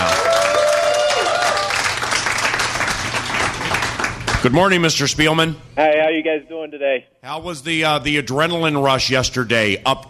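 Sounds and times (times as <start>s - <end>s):
audience applause: 0.0s - 4.4s
speech: 4.4s - 10.0s.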